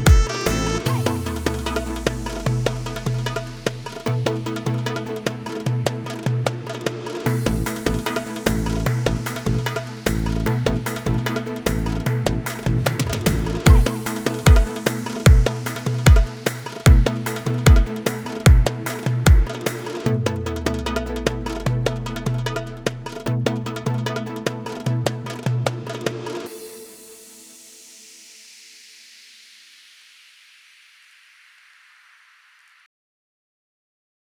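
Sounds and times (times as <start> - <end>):
oriental arabesque music: 0.0 - 27.3.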